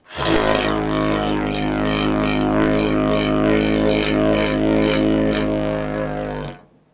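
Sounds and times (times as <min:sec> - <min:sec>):
didgeridoo: 0:00.0 - 0:06.7.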